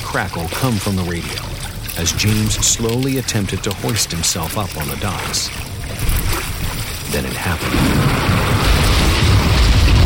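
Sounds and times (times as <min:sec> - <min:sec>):
speech: 0:00.1 - 0:06.5, 0:07.1 - 0:08.5
lightning strike: 0:07.6 - 0:10.0.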